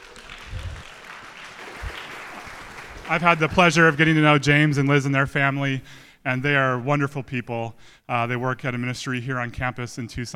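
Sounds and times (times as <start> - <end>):
crowd applause: 0.0 - 4.4
speech: 3.1 - 10.3.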